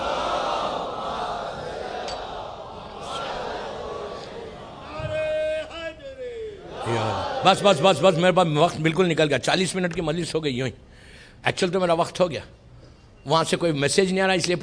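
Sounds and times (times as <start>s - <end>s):
crowd loudly reciting salawat: 0.0s - 8.5s
speech: 7.4s - 12.6s, 13.2s - 14.6s.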